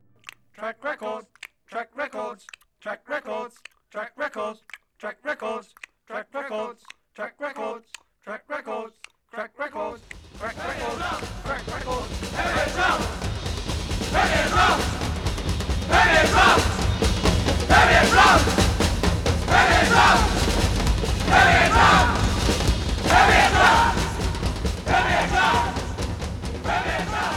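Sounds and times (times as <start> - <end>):
Premier drums playing: 10.0 - 27.3.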